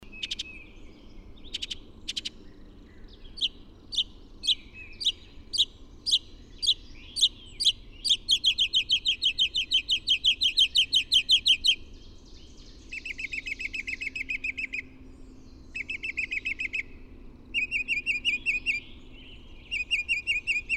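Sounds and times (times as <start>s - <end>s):
bird song of loud high ringing notes: 0.0s - 20.7s.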